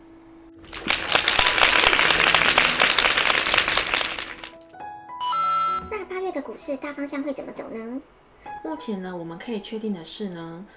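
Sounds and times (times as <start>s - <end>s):
applause sound effect: 0.6s - 4.6s
speech: 6.4s - 10.7s.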